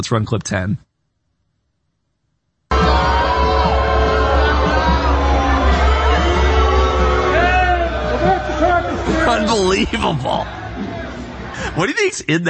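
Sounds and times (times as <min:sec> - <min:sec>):
speech: 0:00.0 - 0:00.9, 0:09.2 - 0:10.6, 0:11.8 - 0:12.4
crowd booing at a passing billboard truck: 0:02.7 - 0:12.0.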